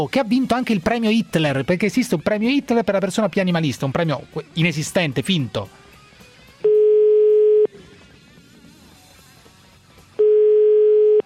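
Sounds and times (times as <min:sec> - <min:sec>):
speech: 0:00.0 - 0:05.8
telephone electronic beeps while placing a call: 0:06.6 - 0:07.7, 0:10.2 - 0:11.2.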